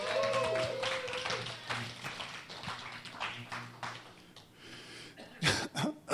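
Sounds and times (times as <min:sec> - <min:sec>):
audience applause: 0:00.0 - 0:04.4
harsh coughs: 0:05.2 - 0:06.1.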